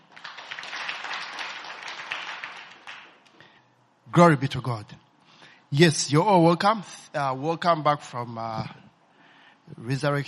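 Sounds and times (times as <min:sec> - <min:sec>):
audience applause: 0:00.0 - 0:03.2
speech: 0:04.1 - 0:05.0, 0:05.7 - 0:08.8, 0:09.7 - 0:10.2.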